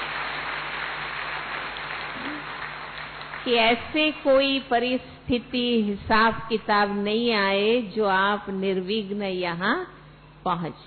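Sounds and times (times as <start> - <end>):
audience clapping hands at a spiritual talk: 0.0 - 4.1
speech: 3.4 - 10.8.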